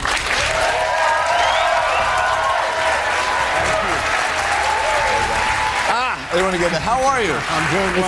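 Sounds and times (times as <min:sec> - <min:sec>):
large crowd applauding: 0:00.0 - 0:08.0
whoops and shouts: 0:00.4 - 0:05.9
speech: 0:06.4 - 0:08.0.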